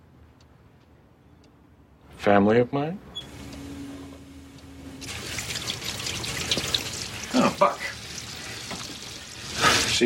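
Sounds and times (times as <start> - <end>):
speech: 2.2 - 3.1
running water as someone washes up: 4.9 - 10.0.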